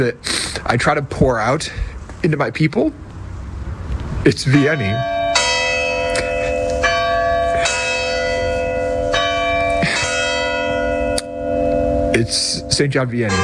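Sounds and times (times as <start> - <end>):
speech: 0.0 - 3.0, 4.2 - 5.1, 12.2 - 13.4
church bells ringing: 4.5 - 13.4.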